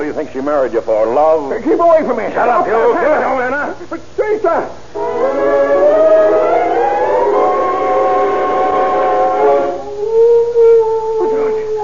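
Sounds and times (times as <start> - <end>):
speech: 0.2 - 6.4
dog howling: 5.0 - 11.8.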